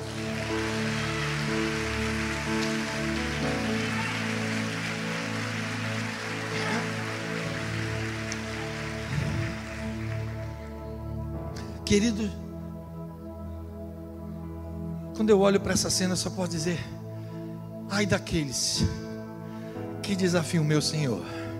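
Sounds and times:
audience applause: 0.0 - 10.9
sustained musical tones: 0.0 - 11.6
speech: 11.9 - 12.4, 15.2 - 17.0, 18.0 - 19.0, 20.1 - 21.4.

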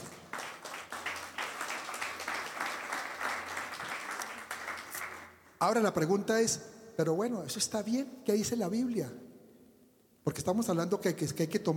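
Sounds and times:
audience applause: 0.0 - 5.3
speech: 5.6 - 9.3, 10.2 - 11.7.

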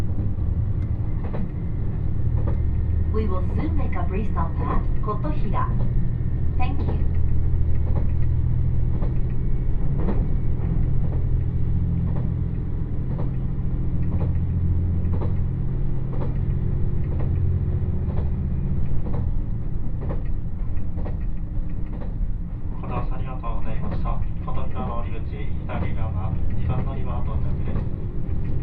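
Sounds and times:
express train running on rails: 0.0 - 28.6
speech: 3.3 - 6.0, 6.6 - 7.2.

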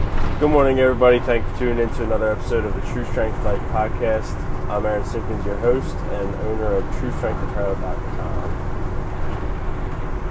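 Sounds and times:
car interior noise while driving: 0.0 - 10.3
speech: 0.4 - 8.5.

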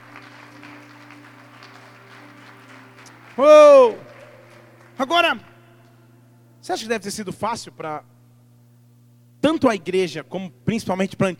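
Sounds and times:
audience applause: 0.0 - 5.6
speech: 3.4 - 4.0, 5.0 - 5.5, 6.6 - 8.1, 9.4 - 11.3.

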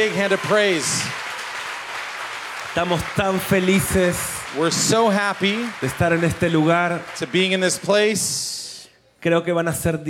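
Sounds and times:
speech: 0.0 - 1.2, 2.8 - 8.6, 9.2 - 10.0
audience applause: 0.0 - 8.2.

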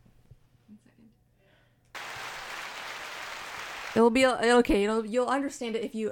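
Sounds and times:
applause sound effect: 2.0 - 4.2
speech: 4.0 - 6.1.

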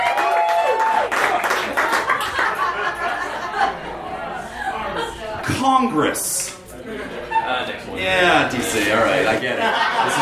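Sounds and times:
crowd clapping and applauding: 0.0 - 3.1
people laughing: 1.3 - 5.4, 6.7 - 8.0, 8.9 - 10.2
loud chatter: 2.0 - 10.2
speech: 5.6 - 10.2.

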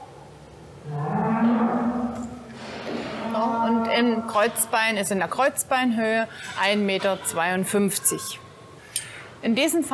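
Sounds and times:
restless cow mooing: 0.8 - 2.5, 3.2 - 4.6
speech: 4.0 - 8.4, 9.4 - 9.9.

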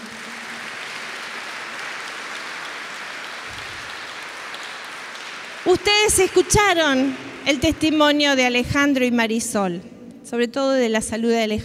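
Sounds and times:
audience applauding: 0.0 - 8.0
speech: 5.6 - 11.6.

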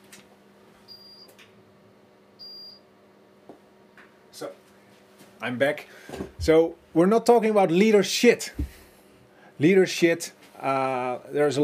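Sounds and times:
low hum: 0.0 - 11.6
stove alarm beeping: 0.9 - 1.3, 2.4 - 2.8
speech: 4.4 - 4.7, 5.4 - 8.7, 9.6 - 11.6.

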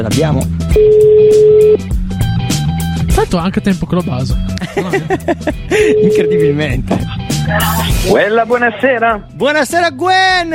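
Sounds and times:
speech: 0.0 - 2.0, 3.2 - 10.5
telephone ringing on an outgoing call: 0.8 - 1.8, 5.9 - 6.6
laughter: 4.6 - 6.4.

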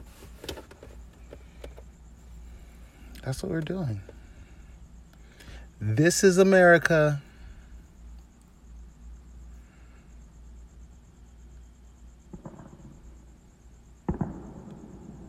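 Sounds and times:
speech: 3.2 - 4.1, 5.8 - 7.3
fireworks going off outside: 12.3 - 13.2, 14.0 - 15.2.

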